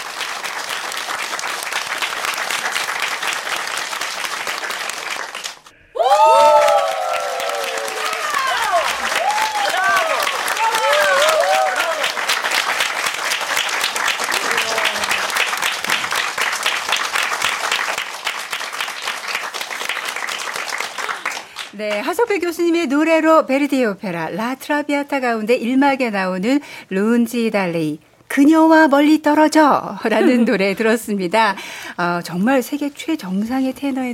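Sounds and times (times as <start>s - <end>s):
audience applause: 0.0s - 21.8s
speech: 21.8s - 34.1s.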